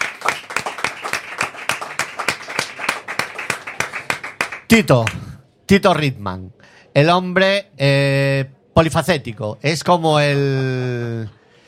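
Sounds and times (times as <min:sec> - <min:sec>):
people clapping: 0:00.0 - 0:05.4
speech: 0:04.7 - 0:11.4.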